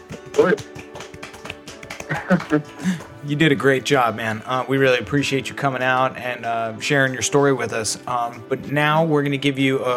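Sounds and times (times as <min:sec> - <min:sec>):
soft golf clap: 0:00.0 - 0:03.5
speech: 0:00.4 - 0:00.8, 0:02.2 - 0:09.9
laughter: 0:02.0 - 0:03.0.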